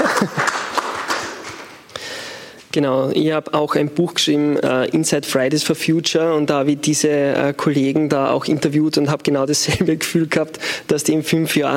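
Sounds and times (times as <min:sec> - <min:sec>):
laughter: 0:00.0 - 0:01.3
audience applause: 0:00.0 - 0:01.8
speech: 0:00.2 - 0:00.4, 0:02.8 - 0:11.7.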